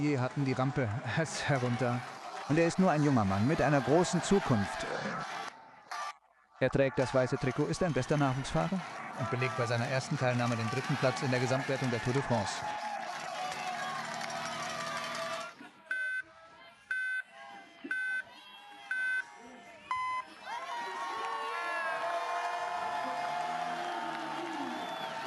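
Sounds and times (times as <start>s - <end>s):
speech: 0.0s - 5.3s, 6.6s - 12.9s
spectators cheering at the start ramp: 0.0s - 15.8s, 17.3s - 25.2s
countdown beeps: 17.9s - 18.2s, 19.9s - 20.2s.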